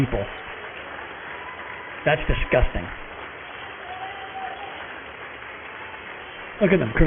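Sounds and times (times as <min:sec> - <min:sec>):
speech: 0:00.0 - 0:00.4, 0:02.0 - 0:03.0, 0:06.6 - 0:07.0
applause in a legislative chamber: 0:00.1 - 0:07.0.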